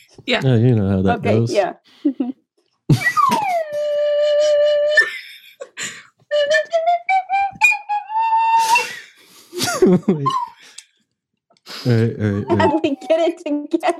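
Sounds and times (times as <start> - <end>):
speech: 0.1 - 3.0, 9.8 - 10.5, 11.8 - 13.9
person singing: 0.4 - 1.6, 2.9 - 5.0, 8.0 - 10.8, 11.7 - 13.9
laughter: 0.4 - 2.3, 2.9 - 4.0, 5.0 - 6.0, 8.6 - 10.8, 11.7 - 13.9
slide whistle: 3.0 - 5.2, 6.3 - 9.2.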